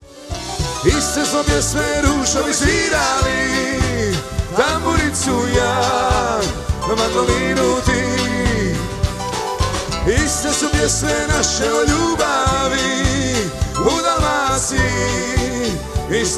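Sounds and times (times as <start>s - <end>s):
tamburica playing: 0.2s - 16.2s.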